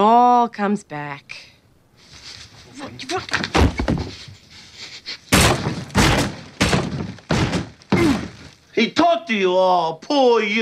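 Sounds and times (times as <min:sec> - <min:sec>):
speech: 0:00.0 - 0:01.5, 0:02.8 - 0:04.3, 0:08.8 - 0:10.6
fist punching a hole through a wall: 0:05.3 - 0:08.4.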